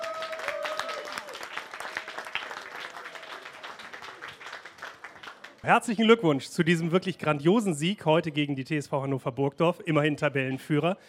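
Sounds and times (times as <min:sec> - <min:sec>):
faint whistles and cheers: 0:00.0 - 0:03.5
audience applause: 0:00.0 - 0:05.7
speech: 0:05.6 - 0:11.0.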